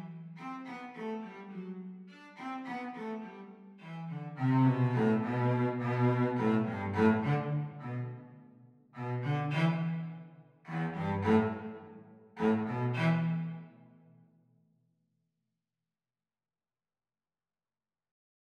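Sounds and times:
cello duet playing a reel at practice speed: 0.0s - 8.3s, 9.0s - 13.6s.

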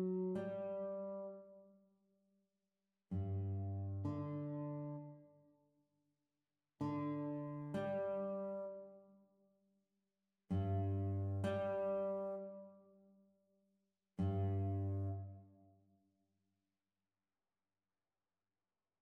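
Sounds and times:
guitar duet: 0.0s - 1.6s, 3.2s - 5.2s, 6.8s - 9.0s, 10.5s - 12.7s, 14.2s - 15.4s.

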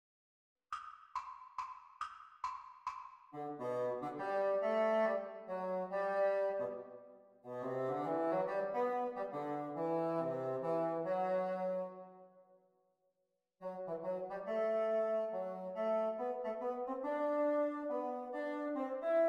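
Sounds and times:
bassoon duet: 3.4s - 6.8s, 7.5s - 12.0s, 13.6s - 19.2s.

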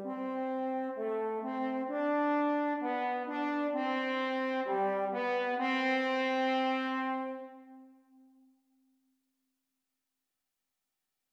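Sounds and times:
French horn duet playalong practice: 0.0s - 8.4s.

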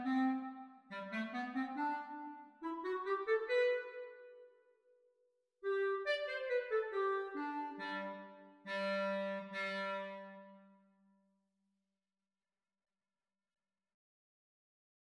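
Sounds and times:
clarinet duet practice: 0.0s - 4.4s, 5.6s - 10.6s.

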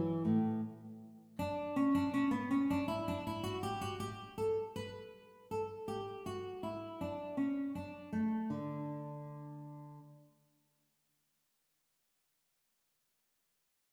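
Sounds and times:
guitar duet practice playalong: 0.0s - 10.2s.

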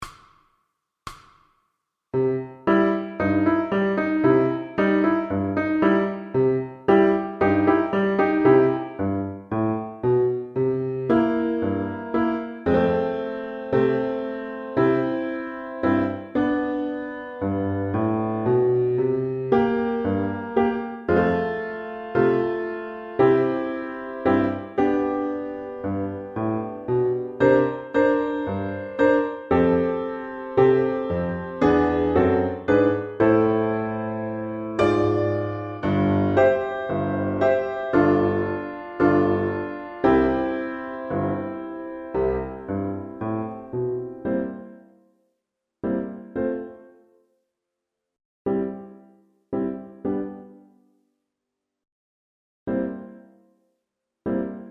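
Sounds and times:
piano accompaniment for violin: 2.1s - 45.1s, 45.8s - 47.2s, 48.5s - 51.0s, 52.7s - 53.6s, 54.2s - 54.6s.

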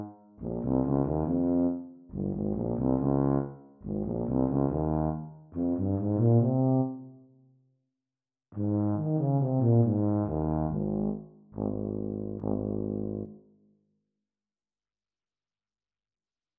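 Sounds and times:
B-flat tuba duet at practice speed: 0.0s - 7.1s, 8.6s - 13.4s.

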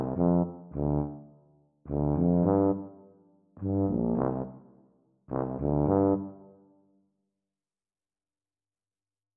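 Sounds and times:
E-flat tuba duet at practice speed: 0.0s - 1.2s, 1.9s - 2.9s, 3.6s - 4.5s, 5.3s - 6.4s.

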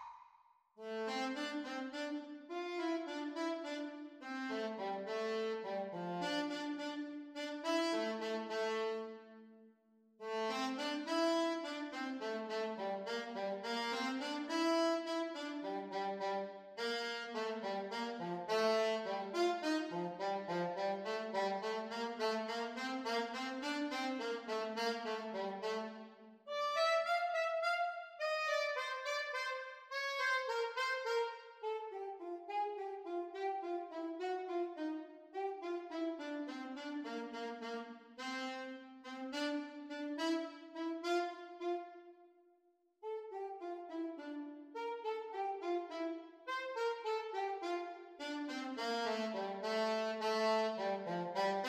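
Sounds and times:
saxophone duet playalong: 0.8s - 9.5s, 10.2s - 42.2s, 43.0s - 51.6s.

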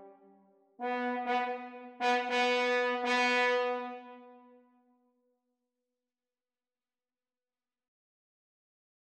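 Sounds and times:
French horn duet playalong practice: 0.8s - 4.4s.

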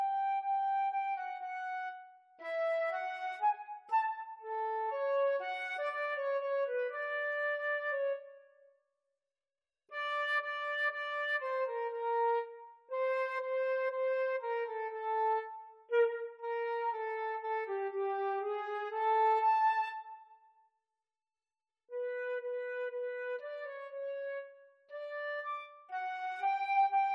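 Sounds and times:
flute duet at exam speed: 0.0s - 8.4s, 10.0s - 20.4s, 22.0s - 27.1s.

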